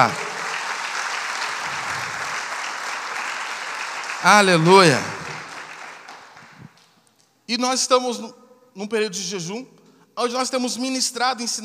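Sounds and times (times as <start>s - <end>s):
speech: 0.0s - 0.2s, 4.2s - 5.2s, 7.5s - 11.6s
audience applause: 0.0s - 6.8s.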